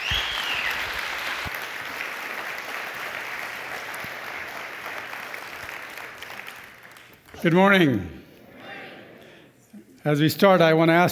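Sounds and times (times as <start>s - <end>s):
audience clapping to welcome a speaker to the stage: 0.0s - 7.8s
speech: 7.4s - 8.2s, 10.0s - 11.1s.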